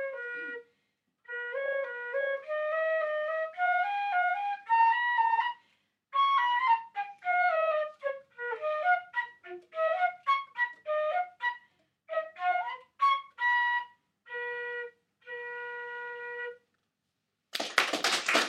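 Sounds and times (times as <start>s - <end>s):
flute solo: 0.0s - 16.7s.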